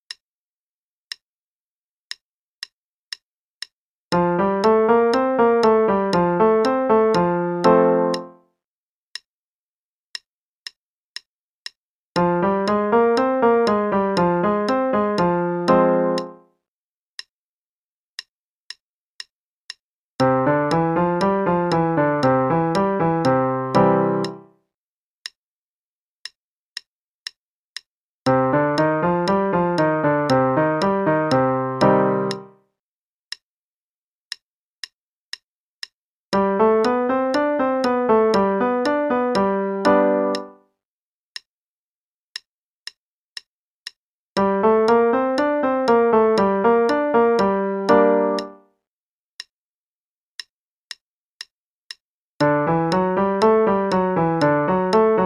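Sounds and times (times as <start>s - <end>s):
5 finger patterns in F, C, G, D, A, E: 2.1s - 8.4s, 10.1s - 16.5s, 18.2s - 24.6s, 28.3s - 32.6s, 36.3s - 40.6s, 43.4s - 48.7s, 50.9s - 55.2s.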